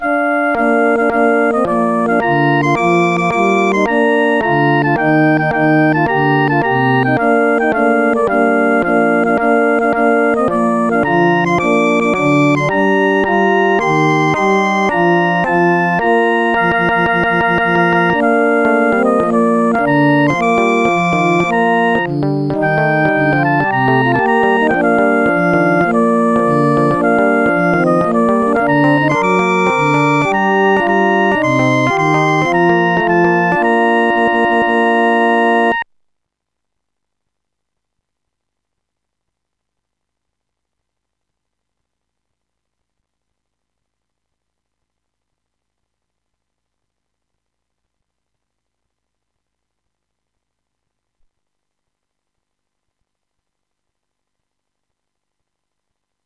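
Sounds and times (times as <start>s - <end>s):
hymn music: 0.0s - 35.8s.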